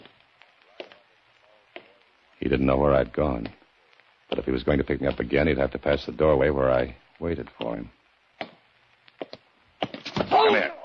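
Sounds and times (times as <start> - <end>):
faint footsteps: 0.0 - 2.3, 3.4 - 5.4, 7.5 - 10.3
steady hiss: 0.0 - 10.8
speech: 2.4 - 3.6, 4.3 - 8.0.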